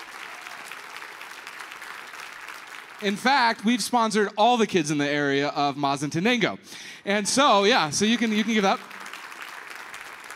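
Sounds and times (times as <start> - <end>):
audience applause: 0.0 - 3.2, 8.0 - 10.3
speech: 3.0 - 9.0.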